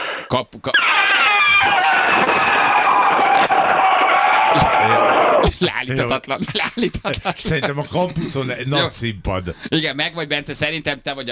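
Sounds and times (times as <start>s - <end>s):
person trumpeting like an elephant: 0.0s - 5.8s
laughter: 0.0s - 9.9s
speech: 0.3s - 2.4s, 5.6s - 11.3s.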